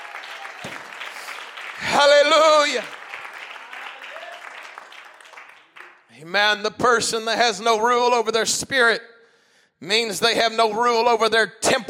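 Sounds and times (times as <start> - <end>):
audience clapping hands: 0.0 - 6.2
speech: 2.0 - 3.0, 6.2 - 9.1, 9.8 - 11.8.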